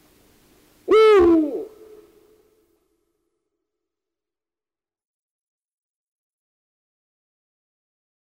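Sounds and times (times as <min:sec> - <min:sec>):
Eurasian eagle-owl calls: 0:00.9 - 0:02.1.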